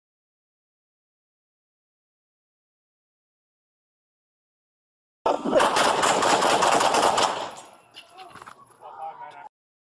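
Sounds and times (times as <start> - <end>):
gunshots as a suspect fires at a deputy in bodycam footage: 5.3 - 7.7.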